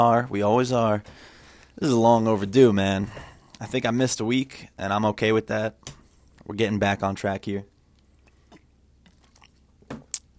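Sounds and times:
speech: 0:00.0 - 0:07.7
person drinking water: 0:07.9 - 0:10.3.

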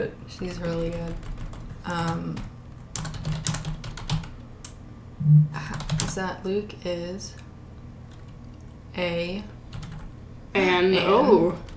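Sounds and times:
speech: 0:00.1 - 0:02.5, 0:05.2 - 0:07.4, 0:09.0 - 0:09.6, 0:10.6 - 0:11.7
fast typing on a keyboard: 0:00.4 - 0:04.3, 0:05.7 - 0:06.2, 0:08.1 - 0:08.7, 0:09.7 - 0:10.1.

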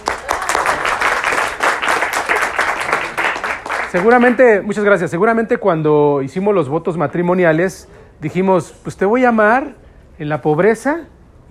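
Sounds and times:
crowd applauding: 0:00.0 - 0:04.5
speech: 0:03.9 - 0:11.5.

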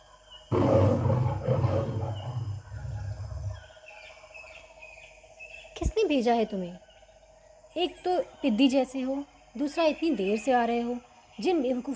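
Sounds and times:
lion roaring: 0:00.5 - 0:03.6
speech: 0:05.8 - 0:06.8, 0:07.8 - 0:11.9.

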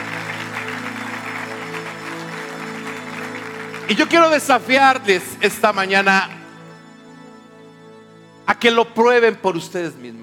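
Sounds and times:
audience applause: 0:00.0 - 0:06.4
sustained low musical tones: 0:00.0 - 0:10.2
speech: 0:03.9 - 0:06.4, 0:08.6 - 0:10.2.

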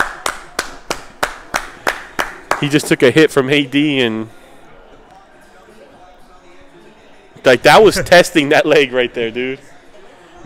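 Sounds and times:
hand clapping: 0:00.0 - 0:03.0
speech: 0:02.6 - 0:04.4, 0:07.4 - 0:09.7.

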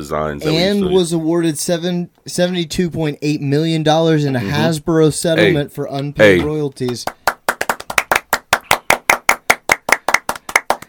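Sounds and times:
speech: 0:00.0 - 0:07.2
rhythmic hand clapping: 0:06.4 - 0:10.8.

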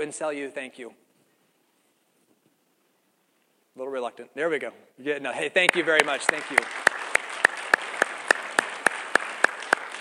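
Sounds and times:
speech: 0:00.0 - 0:01.1, 0:03.8 - 0:06.8
audience rhythmic clapping: 0:05.6 - 0:09.9.

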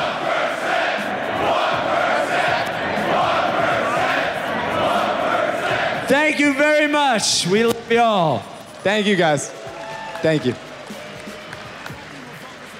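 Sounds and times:
large crowd chanting loudly: 0:00.0 - 0:07.0
speech: 0:06.1 - 0:09.6, 0:10.2 - 0:10.7.

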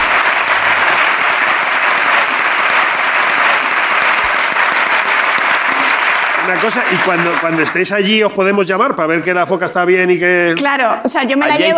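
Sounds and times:
audience applause: 0:00.0 - 0:08.3
speech: 0:06.5 - 0:11.7.

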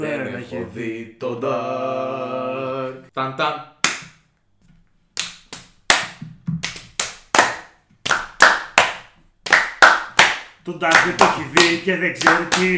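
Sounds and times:
speech: 0:00.1 - 0:02.5, 0:03.2 - 0:03.7, 0:10.6 - 0:12.7
hands clapping: 0:03.8 - 0:04.2, 0:05.2 - 0:12.7.

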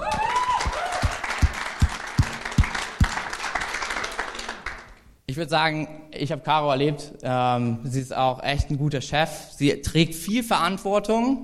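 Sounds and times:
audience applause: 0:00.0 - 0:05.0
speech: 0:05.3 - 0:11.4.

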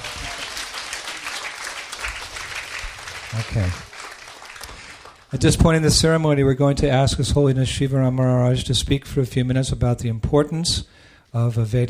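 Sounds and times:
round of applause: 0:00.0 - 0:05.7
speech: 0:03.3 - 0:03.9, 0:05.3 - 0:11.8.

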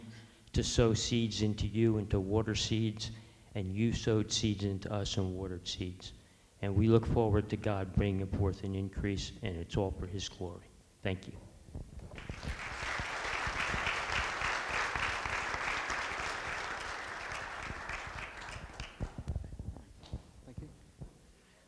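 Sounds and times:
speech: 0:00.6 - 0:11.4
audience applause: 0:12.2 - 0:19.3.

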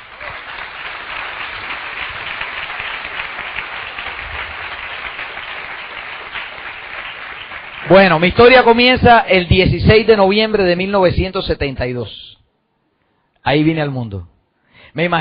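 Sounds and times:
sustained applause from an audience: 0:00.0 - 0:08.6
speech: 0:07.9 - 0:12.4, 0:13.4 - 0:14.3, 0:14.9 - 0:15.1.

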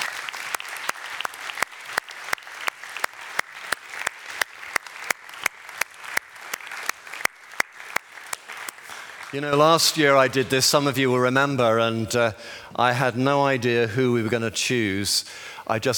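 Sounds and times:
audience applause: 0:00.0 - 0:10.4
speech: 0:09.3 - 0:15.9.

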